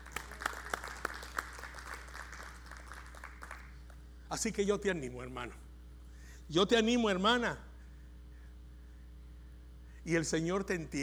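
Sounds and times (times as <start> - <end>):
audience applauding: 0.0 - 3.9
speech: 4.3 - 5.6, 6.5 - 7.7, 10.0 - 11.0.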